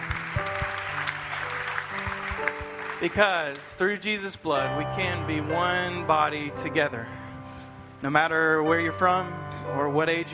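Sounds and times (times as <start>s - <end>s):
audience hand clapping: 0.0s - 4.2s
speech: 3.0s - 7.2s, 8.0s - 10.3s.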